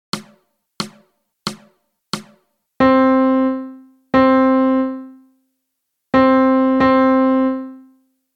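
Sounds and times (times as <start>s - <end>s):
melody: 2.8s - 5.3s, 6.2s - 8.0s.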